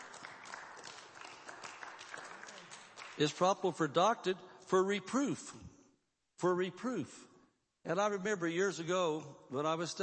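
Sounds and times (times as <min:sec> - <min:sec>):
audience clapping: 0:00.0 - 0:04.0
speech: 0:03.2 - 0:05.7, 0:06.4 - 0:10.0.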